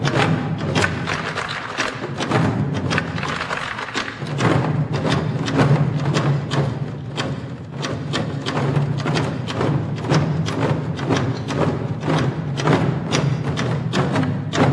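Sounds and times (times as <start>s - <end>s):
Korean drum: 0.0s - 14.7s.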